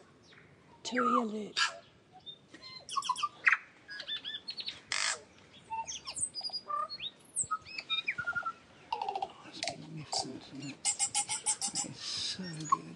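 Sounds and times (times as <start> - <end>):
bird singing: 0.2 - 12.9
speech: 0.9 - 1.7.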